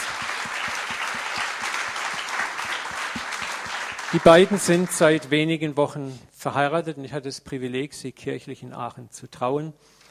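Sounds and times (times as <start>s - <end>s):
audience applause: 0.0s - 5.3s
speech: 4.1s - 10.0s.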